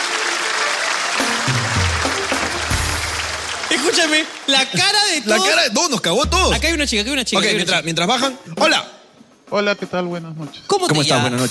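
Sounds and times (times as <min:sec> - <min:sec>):
crowd clapping: 0:00.0 - 0:05.7
speech: 0:03.8 - 0:11.4.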